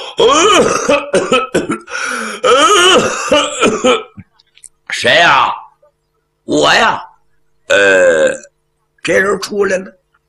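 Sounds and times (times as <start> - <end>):
man coughing and clearing his throat: 0.0 - 4.3
speech: 0.2 - 1.6, 3.2 - 4.3, 4.9 - 5.6, 6.5 - 7.1, 7.7 - 10.0.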